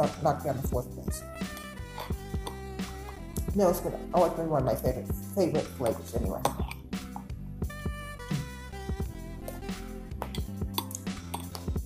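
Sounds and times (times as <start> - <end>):
speech: 0.0 - 1.6, 3.6 - 6.6
spoon scooping chocolate chips from milk drink: 1.5 - 3.2, 5.8 - 7.3, 9.4 - 11.7.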